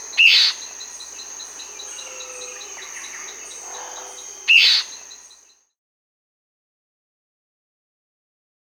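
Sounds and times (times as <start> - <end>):
White-browed Antbird Myrmoborus leucophrys in Peru: 0.0 - 5.6.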